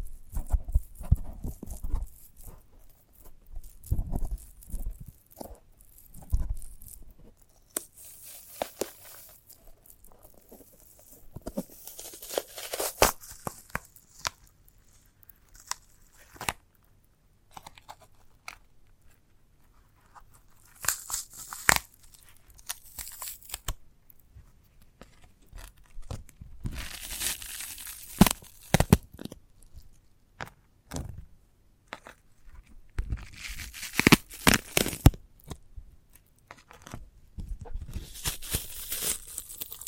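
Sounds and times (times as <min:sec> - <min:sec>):
sprouted coconut handled, crackles, taps and scraping: 0:00.0 - 0:16.6, 0:20.0 - 0:23.8, 0:25.1 - 0:29.9, 0:32.0 - 0:35.5, 0:37.6 - 0:39.8
tearing and crunching of a sprouted coconut: 0:00.0 - 0:16.6, 0:20.5 - 0:23.8, 0:25.5 - 0:29.9, 0:33.0 - 0:35.5, 0:37.8 - 0:39.8.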